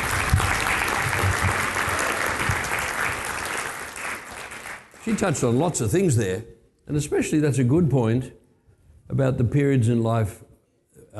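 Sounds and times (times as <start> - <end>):
audience applause after a talk: 0.0 - 5.5
speech: 5.1 - 8.4, 9.1 - 10.4.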